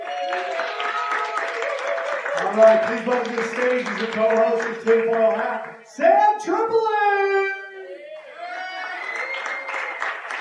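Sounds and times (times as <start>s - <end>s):
live audience applause: 0.0s - 5.8s, 8.1s - 10.3s
speech: 2.4s - 7.2s.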